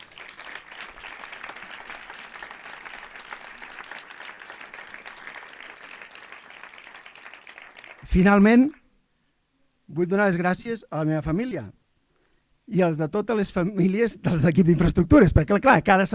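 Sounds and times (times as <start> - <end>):
audience applause: 0.0 - 8.1
speech: 8.1 - 8.8, 10.0 - 11.8, 12.7 - 16.1.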